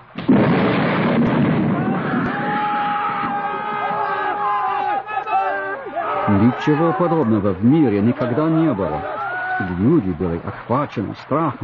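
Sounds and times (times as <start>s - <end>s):
thunder rumbling: 0.0s - 4.5s
laughter: 3.3s - 11.6s
speech: 6.4s - 11.6s.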